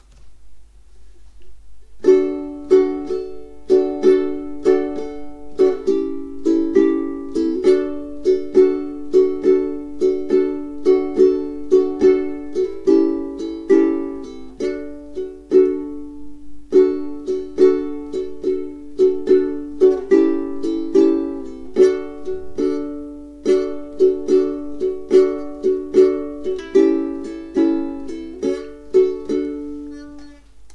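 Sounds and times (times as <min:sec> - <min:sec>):
chords strummed with up and down strokes: 0:02.0 - 0:30.5.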